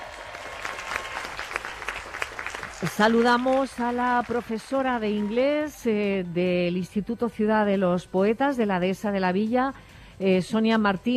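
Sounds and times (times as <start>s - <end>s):
audience applause: 0.0s - 5.6s
speech: 2.8s - 11.1s.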